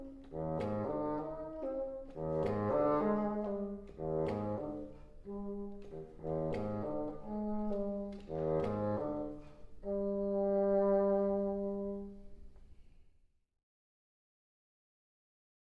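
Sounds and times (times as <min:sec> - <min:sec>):
solo bassoon: 0:00.0 - 0:12.4.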